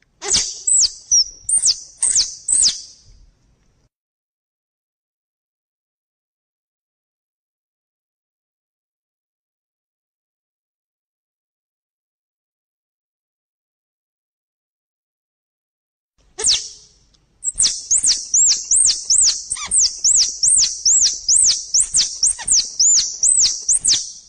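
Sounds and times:
squirrel chattering: 0.2 - 2.8, 17.4 - 24.0.

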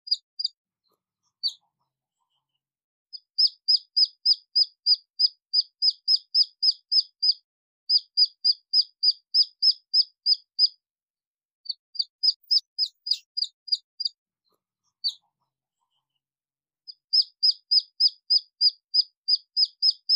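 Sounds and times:
red junglefowl chick peeping: 0.1 - 0.5, 3.2 - 10.8, 11.7 - 14.2, 16.9 - 20.1.

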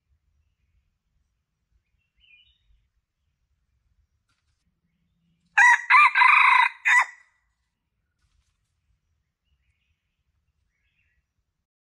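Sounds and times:
Red junglefowl crowing: 5.6 - 7.2.

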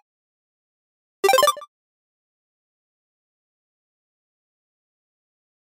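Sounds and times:
8-bit game sound effects: 1.2 - 1.6.

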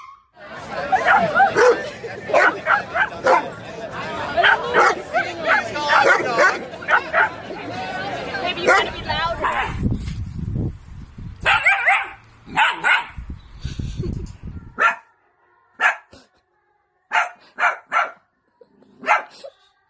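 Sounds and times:
laughter: 0.4 - 9.4
dog barking sharp yaps: 1.0 - 3.5, 4.4 - 7.3, 11.5 - 13.2, 14.8 - 15.1, 15.8 - 16.1, 17.1 - 18.2, 19.0 - 19.4
rustling and shuffling noise: 9.3 - 11.5.

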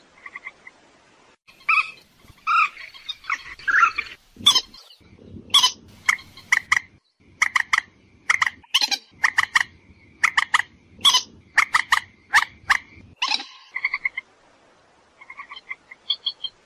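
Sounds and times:
purple swamphen screeching and clucking: 1.5 - 14.2.

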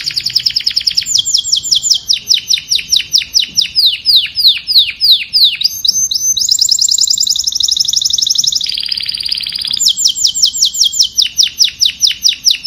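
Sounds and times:
domestic canary singing: 0.0 - 12.6.

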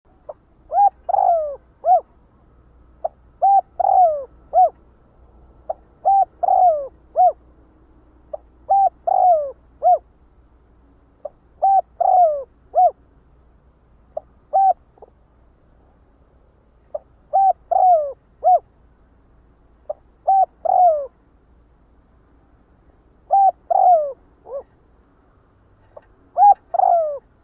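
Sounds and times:
spotted dove cooing: 0.2 - 2.2, 3.0 - 4.8, 5.6 - 7.4, 8.3 - 10.1, 11.2 - 13.0, 14.2 - 15.1, 16.9 - 18.7, 19.9 - 21.2, 23.3 - 24.8, 25.9 - 27.4.

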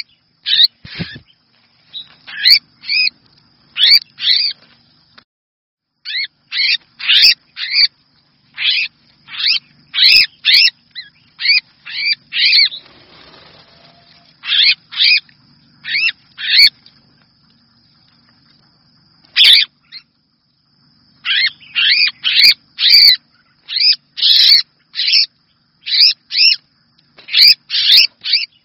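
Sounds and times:
red-whiskered bulbul distress call: 0.0 - 3.1, 6.0 - 7.9, 8.5 - 15.2, 15.8 - 16.7, 19.4 - 20.1, 21.2 - 26.6, 27.2 - 28.6.

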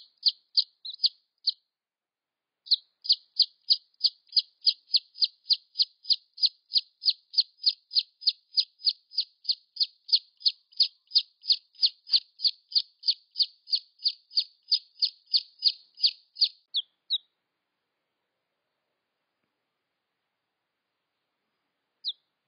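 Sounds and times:
red junglefowl chick peeps: 0.0 - 1.6, 2.7 - 17.3, 22.0 - 22.3.

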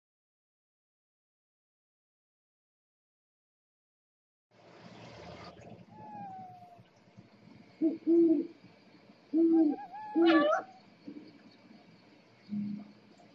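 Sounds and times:
owl hooting: 5.9 - 6.9, 7.7 - 8.6, 9.3 - 11.4.

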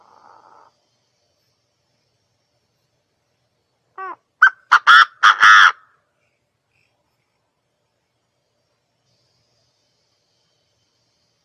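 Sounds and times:
partridge raspy calls: 0.0 - 0.8, 3.9 - 7.0.

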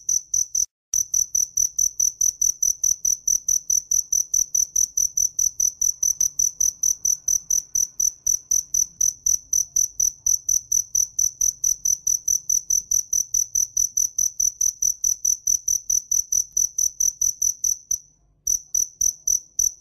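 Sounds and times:
cricket chirping: 0.0 - 19.7.

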